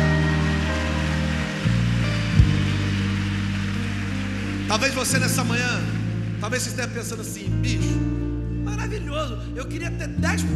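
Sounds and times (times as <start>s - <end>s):
audience applause: 0.0s - 7.3s
sustained low keyboard or organ chords: 0.0s - 10.5s
speech: 4.7s - 10.5s.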